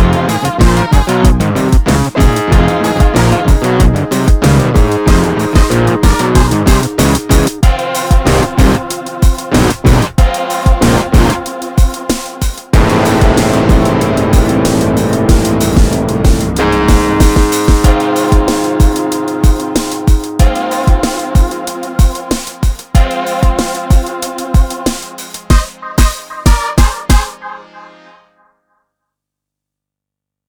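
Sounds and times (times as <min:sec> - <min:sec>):
harpejji K24 synth: 0:00.0 - 0:28.7.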